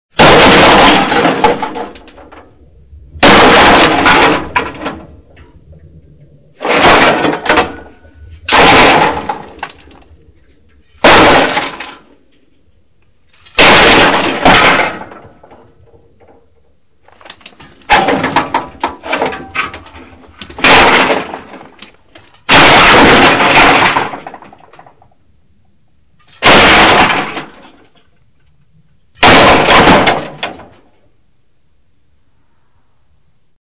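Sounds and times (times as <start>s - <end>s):
crash: 0.1s - 25.6s, 26.2s - 31.2s.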